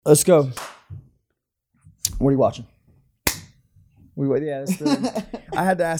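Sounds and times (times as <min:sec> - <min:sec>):
speech: 0:00.0 - 0:00.7, 0:02.2 - 0:02.7, 0:04.2 - 0:05.9
hand clap for audio sync: 0:03.3 - 0:03.5.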